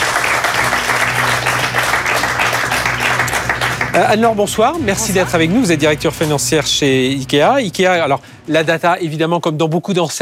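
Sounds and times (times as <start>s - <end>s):
audience applause: 0.0s - 5.8s
speech: 4.0s - 10.2s.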